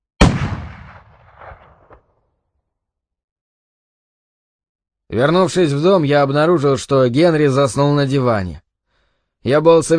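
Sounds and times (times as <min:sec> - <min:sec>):
single gunshot with rolling echo: 0:00.2 - 0:02.0
speech: 0:05.1 - 0:08.6, 0:09.4 - 0:09.9.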